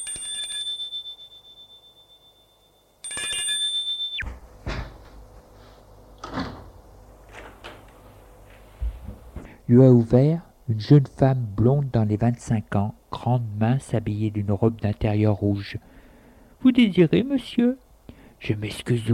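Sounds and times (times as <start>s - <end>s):
doorbell ringing at apartment door: 0.0s - 4.3s
speech: 9.7s - 16.0s, 16.6s - 17.8s, 18.4s - 19.1s.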